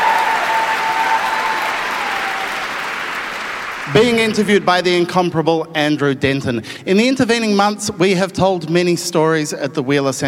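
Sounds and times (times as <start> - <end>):
audience cheering and hooting: 0.0 - 4.8
speech: 3.9 - 10.2.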